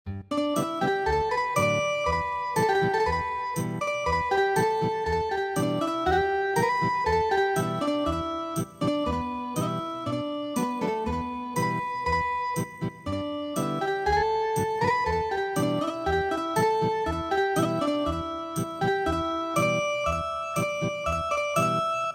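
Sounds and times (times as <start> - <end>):
ethnic guitar music: 0.2 - 21.9.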